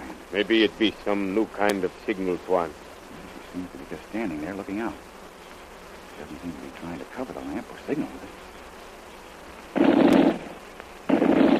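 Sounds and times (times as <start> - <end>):
speech: 0.3 - 2.8, 3.5 - 5.1, 6.2 - 8.5
machine-gun fire as a radio drama sound effect: 9.8 - 10.5, 11.1 - 11.5.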